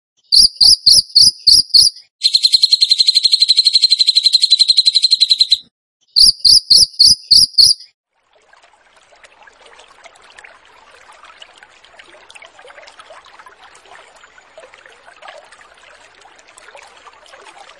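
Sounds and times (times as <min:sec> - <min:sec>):
bird song: 0:00.2 - 0:07.9.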